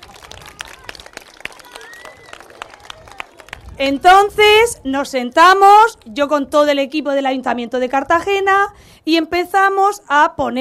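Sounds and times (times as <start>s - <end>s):
audience applause: 0.0s - 3.8s
speech: 3.8s - 10.6s.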